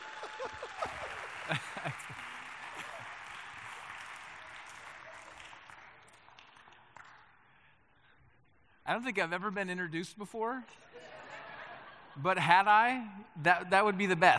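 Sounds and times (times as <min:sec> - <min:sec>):
brief shouts and cheers: 0:00.0 - 0:02.0
laughter: 0:00.0 - 0:03.9, 0:10.7 - 0:12.7
crowd applauding: 0:00.0 - 0:07.7
speech: 0:00.4 - 0:02.1, 0:08.9 - 0:10.9, 0:12.2 - 0:14.3.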